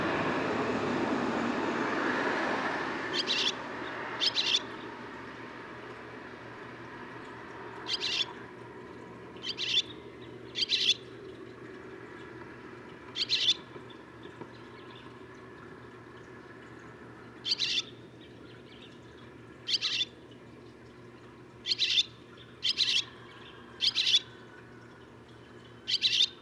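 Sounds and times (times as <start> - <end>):
low steady hum: 0.0 - 26.4
barn swallow chirping: 3.1 - 3.6, 4.2 - 4.8, 7.9 - 8.4, 9.4 - 11.1, 13.2 - 13.6, 17.4 - 17.9, 19.7 - 20.2, 21.6 - 24.4, 25.8 - 26.4.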